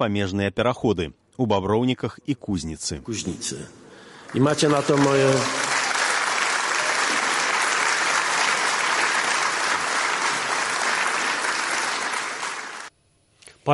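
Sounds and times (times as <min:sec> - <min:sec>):
speech: 0:00.0 - 0:05.6
large audience applause at a business forum: 0:04.1 - 0:12.9.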